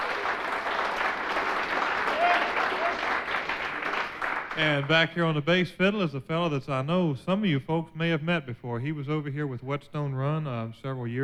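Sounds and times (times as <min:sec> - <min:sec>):
audience applause welcoming a bluegrass mandolin player: 0:00.0 - 0:05.1
speech: 0:04.6 - 0:11.2.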